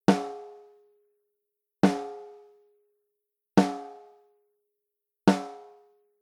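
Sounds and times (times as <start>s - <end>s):
snare drum through API 512C preamps: 0.1s - 0.5s, 3.6s - 4.0s, 5.3s - 5.7s.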